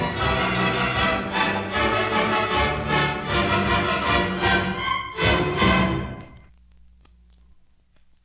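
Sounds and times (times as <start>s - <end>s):
polka music: 0.0s - 6.4s.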